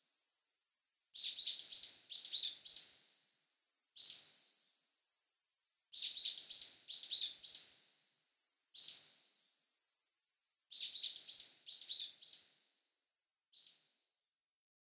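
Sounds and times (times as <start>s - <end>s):
bird: 1.2s - 3.0s, 4.0s - 4.5s, 5.9s - 7.8s, 8.8s - 9.2s, 10.7s - 12.6s, 13.6s - 13.9s.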